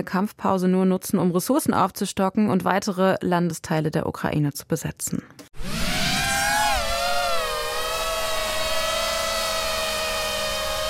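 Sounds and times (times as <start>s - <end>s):
speech: 0.0s - 5.7s
buzzing of a small FPV drone: 5.6s - 10.8s.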